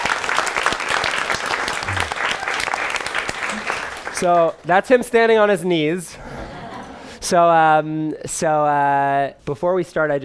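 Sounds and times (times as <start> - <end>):
audience applause: 0.0 - 4.5
speech: 4.2 - 6.2, 7.2 - 10.2.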